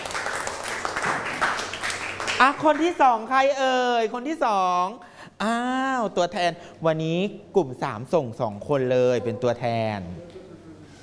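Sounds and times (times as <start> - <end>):
class of students applauding a classmate after a presentation: 0.0 - 3.0
speech: 2.4 - 10.3.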